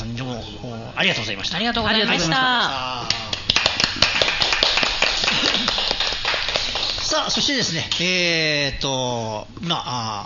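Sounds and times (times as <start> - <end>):
speech: 0.6 - 3.2, 7.2 - 10.2
applause: 3.1 - 8.0.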